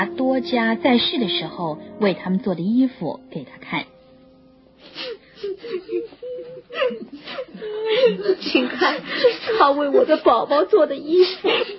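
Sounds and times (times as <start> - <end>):
speech: 0.0 - 4.0, 6.8 - 11.7
widows weeping: 4.8 - 10.4.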